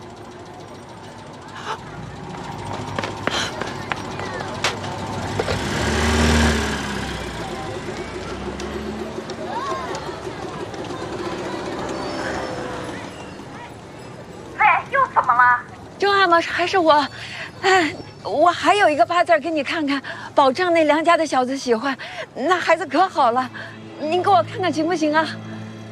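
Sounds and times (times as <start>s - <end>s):
cars passing along a street: 0.0s - 18.2s, 19.1s - 25.8s
vehicle rushing by: 1.8s - 14.5s
speech: 16.3s - 25.4s.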